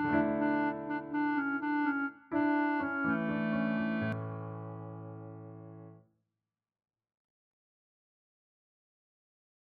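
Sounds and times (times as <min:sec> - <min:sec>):
piano song: 0:00.0 - 0:06.0.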